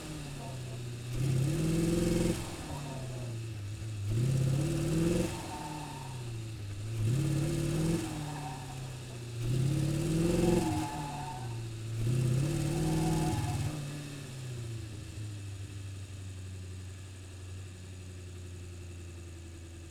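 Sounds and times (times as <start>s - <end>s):
2013 Audi RS4 engine driving in circles and stopping: 0.0s - 17.0s.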